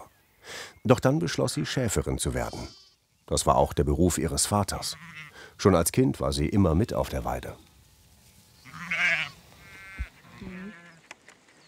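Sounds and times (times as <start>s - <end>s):
speech: 0.8s - 7.7s
sheep bleating: 2.4s - 3.0s, 4.8s - 5.4s, 8.6s - 11.0s.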